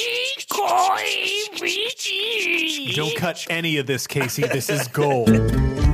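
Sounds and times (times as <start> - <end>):
voice imitating a creaking ship rudder: 0.0 - 4.0
laughter: 0.0 - 5.7
speech: 0.6 - 5.8.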